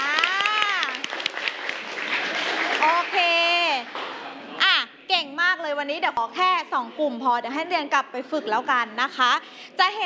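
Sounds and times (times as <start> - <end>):
class of students clapping hands: 0.0 - 4.3
speech: 5.8 - 10.0.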